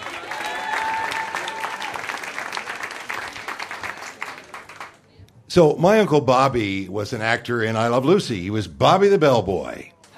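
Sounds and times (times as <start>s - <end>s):
audience applauding: 0.0s - 5.0s
speech: 5.5s - 9.9s.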